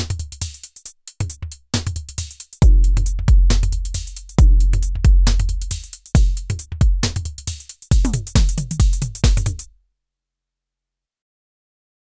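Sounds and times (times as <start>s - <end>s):
Nord Drum through Octatrack: 0.0s - 9.7s.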